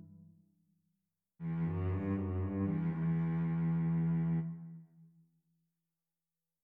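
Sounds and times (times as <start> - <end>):
solo cello soliloquy: 1.4 - 5.0.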